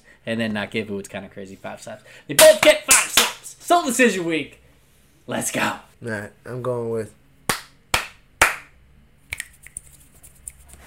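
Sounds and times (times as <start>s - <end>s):
speech: 0.2s - 2.9s, 3.7s - 4.6s, 5.3s - 7.2s
hand claps: 2.4s - 3.4s, 7.5s - 9.9s
finger snaps: 9.3s - 9.9s.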